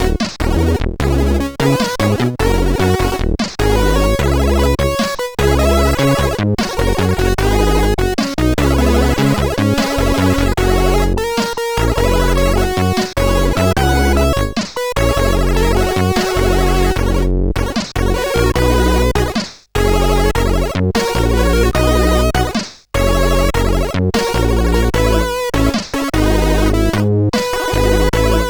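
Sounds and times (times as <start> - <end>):
SID CSG8580R5 chip synthesizer sound: 0.0 - 28.4.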